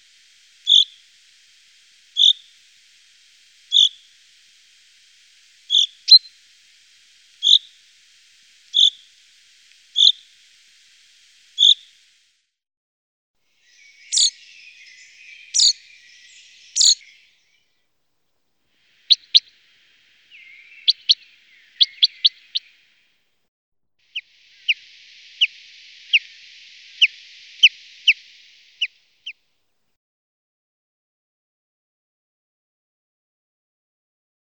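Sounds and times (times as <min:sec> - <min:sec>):
Common chaffinch trilling song: 0:00.0 - 0:12.2, 0:13.6 - 0:17.6, 0:18.8 - 0:23.0, 0:24.1 - 0:29.4.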